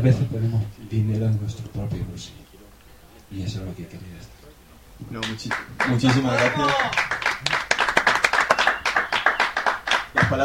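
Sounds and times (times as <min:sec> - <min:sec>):
speech: 0:00.0 - 0:02.4, 0:03.3 - 0:04.4, 0:05.0 - 0:07.7
audience applause in a garage bar: 0:05.1 - 0:10.4.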